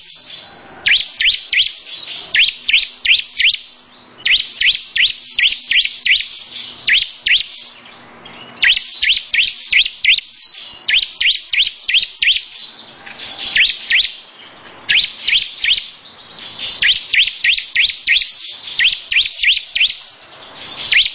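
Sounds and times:
lovebird long continuous ngekek chattering song: 0.0s - 21.1s.

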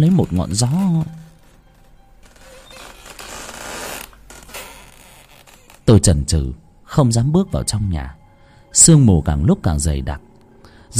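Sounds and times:
speech: 0.0s - 1.3s, 5.9s - 10.3s
door creaking: 0.0s - 6.1s.

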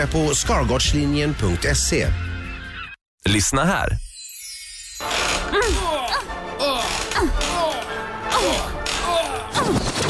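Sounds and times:
speech: 0.0s - 2.3s, 3.2s - 4.0s
rocking chair creaking: 5.0s - 9.5s.

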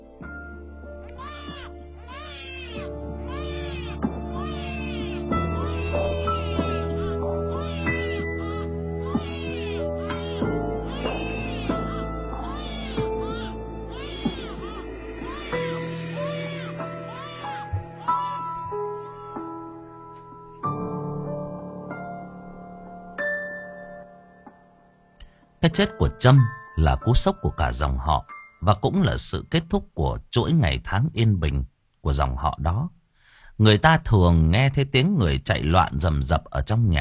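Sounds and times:
two hungry newborn babies crying: 0.9s - 19.9s
speech: 25.7s - 33.0s, 33.6s - 37.0s.

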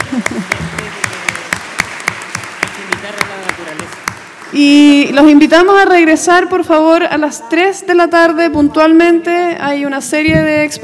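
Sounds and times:
audience applause for the panelists: 0.0s - 5.0s
speech: 4.5s - 10.8s.

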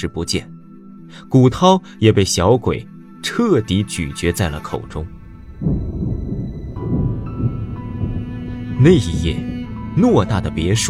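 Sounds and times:
speech: 0.0s - 6.1s, 8.8s - 10.8s
deep continuous thunder outside a window at night during a storm: 5.0s - 10.4s.

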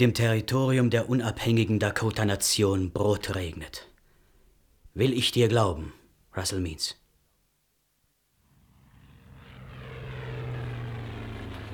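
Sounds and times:
speech: 0.0s - 3.9s, 5.0s - 7.0s
approaching aircraft engines: 8.5s - 11.7s.

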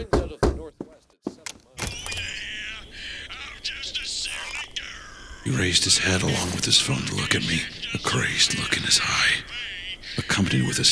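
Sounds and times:
knocking on a door: 0.0s - 0.7s
speech: 5.5s - 9.6s, 10.3s - 10.9s.

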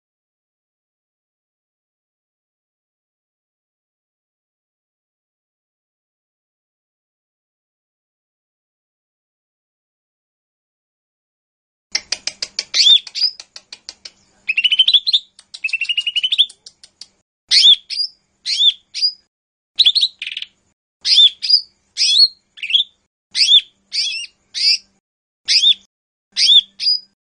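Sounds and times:
bird song of short bright whistled phrases and rasping buzzy bursts: 12.7s - 13.4s, 14.1s - 16.7s, 17.5s - 27.2s.

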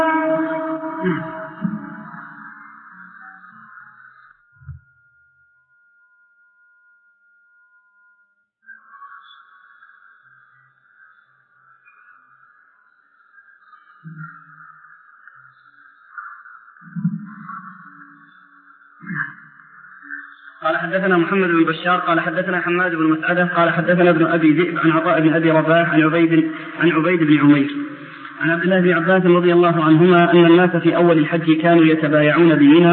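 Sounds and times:
Islamic call to prayer chanted by a lone voice: 0.0s - 4.0s, 20.6s - 32.9s
speech: 20.9s - 27.8s, 28.4s - 32.9s.

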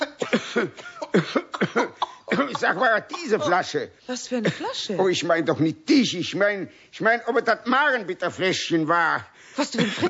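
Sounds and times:
coughing fit: 0.0s - 3.6s
speech: 0.4s - 10.0s.

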